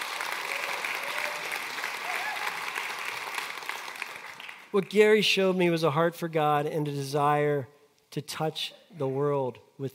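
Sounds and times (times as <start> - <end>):
audience clapping: 0.0 - 5.0
speech: 4.7 - 9.9.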